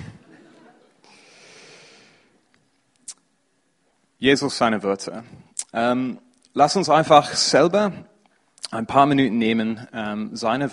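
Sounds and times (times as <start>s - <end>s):
long soft exhale during a guided pause in a Bible study group: 1.0s - 2.3s
speech: 4.2s - 10.7s.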